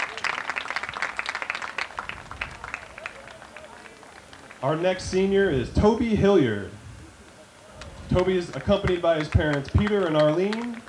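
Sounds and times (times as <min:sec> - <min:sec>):
crowd applause: 0:00.0 - 0:05.0, 0:07.6 - 0:10.8
speech: 0:04.6 - 0:06.8, 0:08.1 - 0:10.8.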